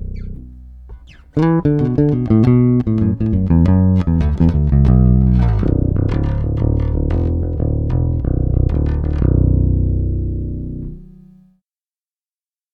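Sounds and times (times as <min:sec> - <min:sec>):
electric guitar with bridge and neck pickups: 0:00.2 - 0:11.1.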